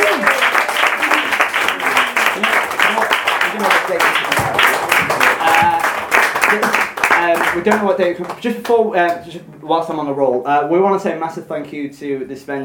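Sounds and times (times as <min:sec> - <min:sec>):
audience round of applause: 0:00.0 - 0:07.8
speech: 0:07.6 - 0:12.6.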